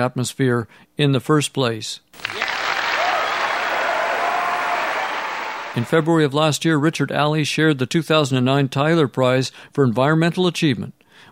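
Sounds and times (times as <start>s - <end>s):
speech: 0.0s - 2.4s, 5.8s - 11.3s
audience applause: 2.2s - 6.1s.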